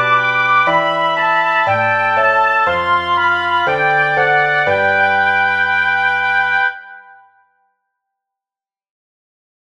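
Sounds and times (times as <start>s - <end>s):
soprano flute: 0.0s - 7.5s.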